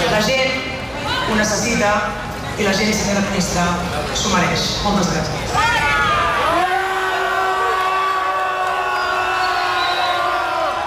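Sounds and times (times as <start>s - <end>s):
speech: 0.2s - 0.4s, 1.3s - 5.9s
crowd shouting shame: 5.6s - 10.8s.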